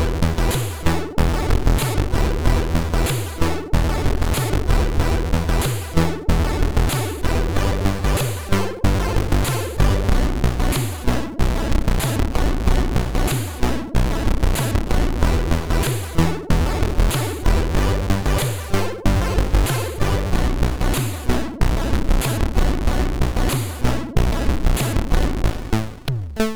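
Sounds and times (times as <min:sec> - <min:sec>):
complex beat on MOS6581R2 SID chip: 0:00.0 - 0:26.5.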